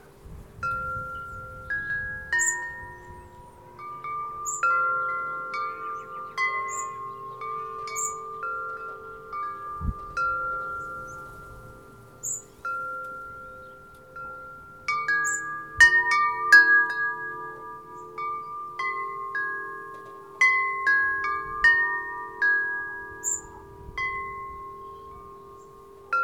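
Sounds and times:
wind chimes: 0.0 - 26.2
local traffic: 3.4 - 16.4.

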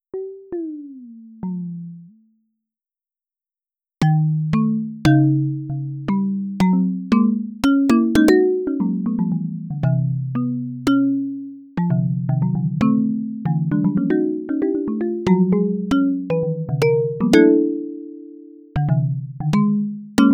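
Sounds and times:
marimba: 4.0 - 20.3.

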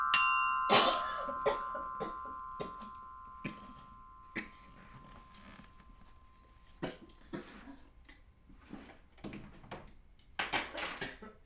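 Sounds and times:
glockenspiel: 0.0 - 6.0.

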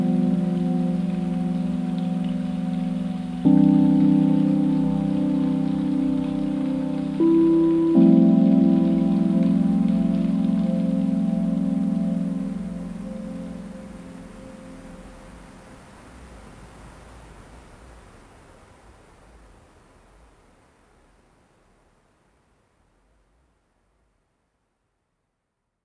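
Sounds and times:
mountain stream flowing: 0.0 - 16.6.

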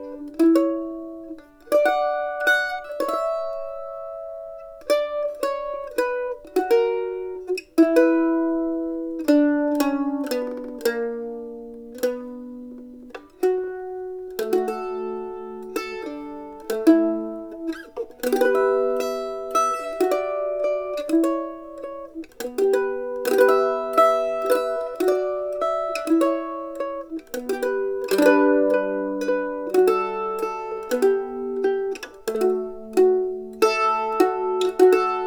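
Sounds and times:
dry mandolin: 0.0 - 35.2.

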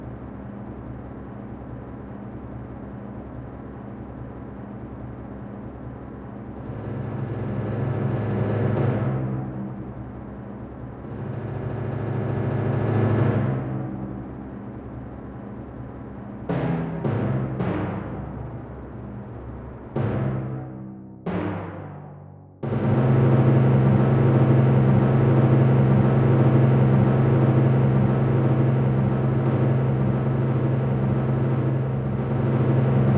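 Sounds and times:
timpani: 6.6 - 33.1.

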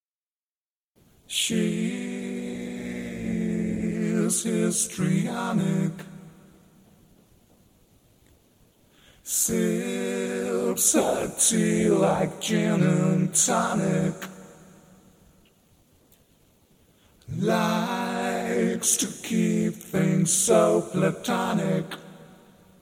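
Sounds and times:
histrionic vocals: 1.3 - 6.7, 9.2 - 15.2, 17.2 - 22.8.

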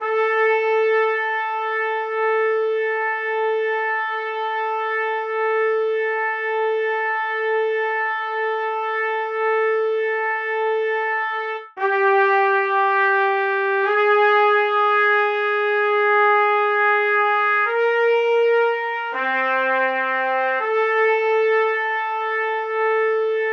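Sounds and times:
trumpets: 0.0 - 23.5.

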